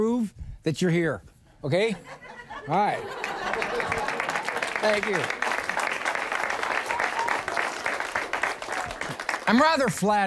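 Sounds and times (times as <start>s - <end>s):
speech: 0.0s - 3.3s, 4.8s - 5.4s, 9.5s - 10.2s
laughter: 1.9s - 6.0s
audience applause: 3.0s - 10.1s.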